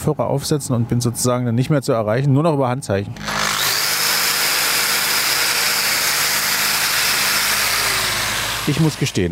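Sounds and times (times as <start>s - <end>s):
speech: 0.0s - 3.5s, 8.7s - 9.3s
angle grinder cutting steel: 3.2s - 9.3s.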